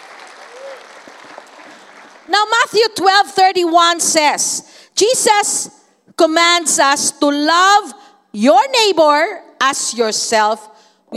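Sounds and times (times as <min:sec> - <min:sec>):
audience clapping: 0:00.0 - 0:02.3
speech: 0:02.3 - 0:11.1.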